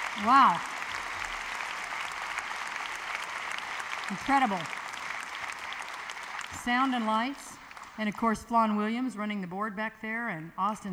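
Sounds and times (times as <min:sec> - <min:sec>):
audience applause for a stage sound and lighting crew at a live event: 0:00.0 - 0:08.0
speech: 0:00.2 - 0:00.8, 0:04.1 - 0:04.8, 0:06.5 - 0:10.9.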